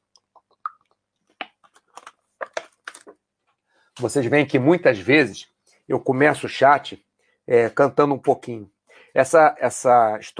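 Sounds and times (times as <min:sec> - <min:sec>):
person drinking water: 0:00.2 - 0:03.2
speech: 0:04.0 - 0:10.3.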